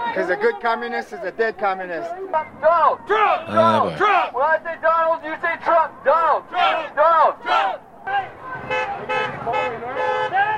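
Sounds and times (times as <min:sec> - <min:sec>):
speech: 0:00.2 - 0:10.1
car horns beeping from passing cars: 0:08.5 - 0:10.5.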